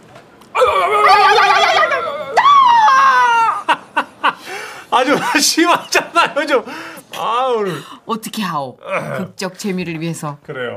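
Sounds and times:
person imitating screams of patients in pain: 0:00.6 - 0:03.6
laughter: 0:00.6 - 0:06.8
speech: 0:05.0 - 0:10.7.

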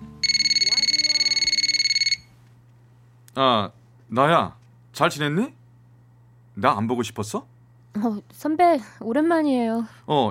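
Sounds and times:
telephone ringing: 0:00.2 - 0:02.4
speech: 0:03.4 - 0:05.6, 0:06.6 - 0:10.2.

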